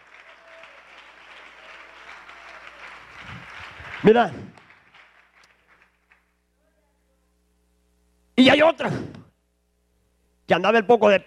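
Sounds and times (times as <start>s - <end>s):
audience applause: 0.0s - 6.3s
speech: 4.0s - 4.5s, 8.6s - 9.2s, 10.5s - 11.2s.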